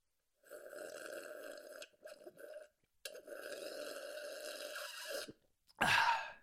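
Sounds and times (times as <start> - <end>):
loud sipping of water: 0.5 - 5.4.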